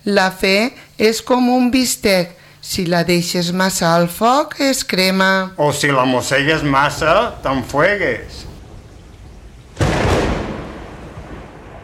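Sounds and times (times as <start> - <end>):
speech: 0.0 - 8.5
loud thunder clap close by: 6.2 - 11.8.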